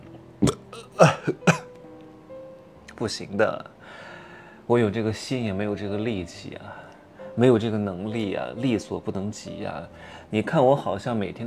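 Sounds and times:
hiccups: 0.4s - 1.7s
speech: 3.0s - 4.0s, 4.7s - 11.4s.

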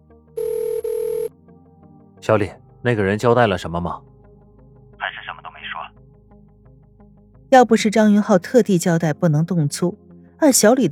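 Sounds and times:
telephone ringing: 0.4s - 1.3s
speech: 2.2s - 4.1s, 7.5s - 10.9s.

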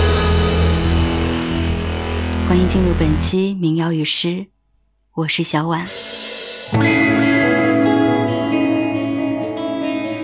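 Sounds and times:
psychedelic electronic band song: 0.0s - 3.3s, 5.9s - 10.2s
speech: 2.5s - 4.5s, 5.2s - 7.0s.

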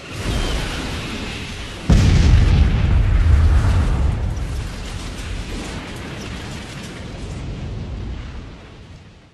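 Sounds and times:
loud explosion sound effect: 1.9s - 8.4s.

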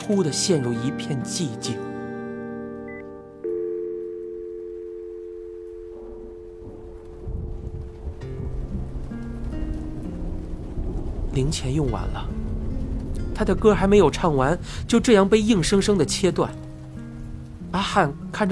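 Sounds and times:
speech: 0.0s - 2.0s, 11.4s - 12.4s, 13.4s - 16.6s, 17.7s - 18.5s
wind and rain storm: 4.1s - 18.5s.

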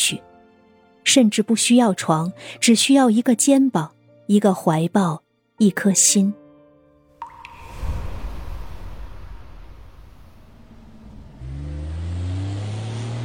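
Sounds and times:
speech: 0.1s - 0.3s, 1.0s - 6.4s
dusty car engine driving on muddy road: 10.6s - 13.2s.

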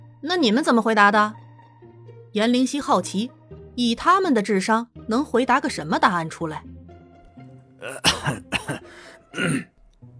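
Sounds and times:
speech: 0.2s - 1.4s, 2.3s - 6.7s, 7.8s - 8.5s, 9.4s - 9.7s
old man clearing his throat: 7.8s - 9.8s.

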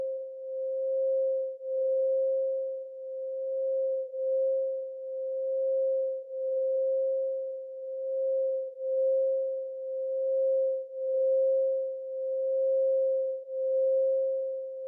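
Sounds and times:
singing bowl 440Hz tone: 0.0s - 14.8s.

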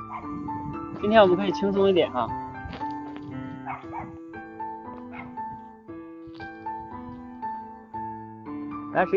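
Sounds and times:
neighbor's dog barking: 0.0s - 0.4s, 3.6s - 4.2s, 5.1s - 5.4s
speech: 1.0s - 2.4s, 9.0s - 9.1s.

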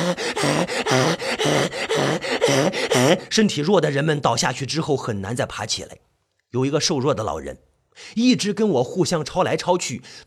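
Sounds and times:
heavy panting breaths: 0.0s - 3.4s
speech: 3.1s - 10.2s.

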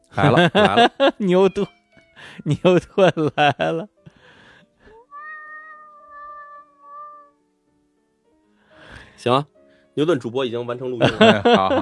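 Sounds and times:
laughter: 0.2s - 1.2s, 2.5s - 3.9s, 11.0s - 11.8s
speech: 0.2s - 3.9s, 9.2s - 11.8s
cat meowing: 5.0s - 7.4s.

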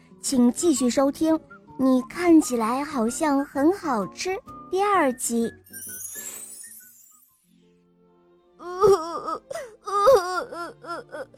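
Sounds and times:
speech: 0.2s - 6.0s
young dinosaur crying sound effect: 8.6s - 11.3s.

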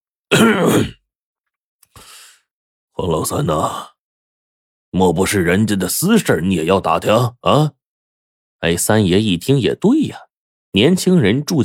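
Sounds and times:
person coughing: 0.3s - 1.0s
speech: 0.3s - 1.0s, 3.0s - 3.9s, 4.9s - 7.8s, 8.6s - 11.6s.

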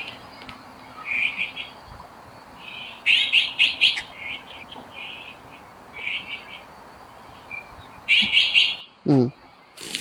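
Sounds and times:
magpies and azure-winged magpies chattering: 0.0s - 9.9s
speech: 9.1s - 9.4s.

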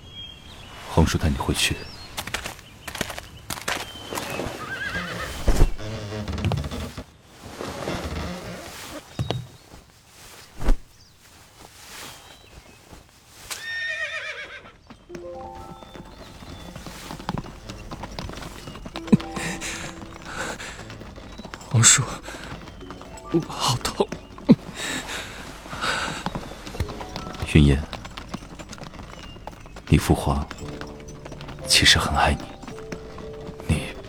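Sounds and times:
speech: 1.0s - 2.0s
hooves of a horse-drawn carriage clip-clopping: 1.6s - 34.0s
horse neighing: 4.0s - 6.9s, 13.5s - 34.0s.

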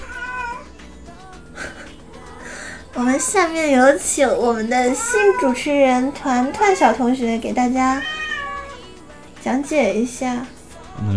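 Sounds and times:
cat meowing: 0.0s - 0.7s, 4.8s - 7.0s, 7.8s - 9.0s
speech: 3.0s - 8.2s, 9.4s - 11.1s.

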